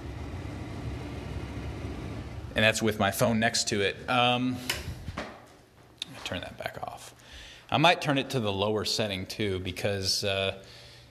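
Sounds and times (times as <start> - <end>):
bathroom exhaust fan running on medium setting: 0.0 - 5.2
speech: 2.6 - 4.9, 6.3 - 6.7, 7.7 - 10.8.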